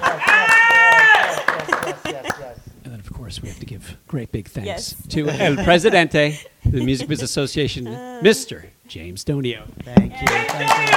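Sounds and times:
hand clapping: 0:00.0 - 0:02.5, 0:10.0 - 0:10.9
laughter: 0:00.0 - 0:02.6, 0:05.2 - 0:08.3
speech: 0:04.1 - 0:10.9.

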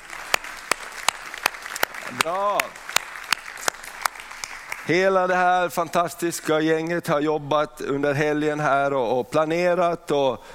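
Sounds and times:
audience applause: 0:00.0 - 0:05.4
speech: 0:02.1 - 0:02.8, 0:04.9 - 0:10.5.

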